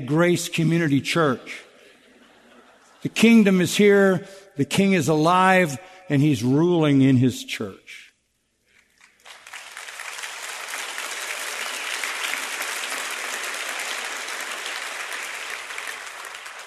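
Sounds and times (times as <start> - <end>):
speech: 0.1 - 1.7, 3.0 - 8.0
laughter: 1.7 - 3.2
audience applause: 9.0 - 16.6.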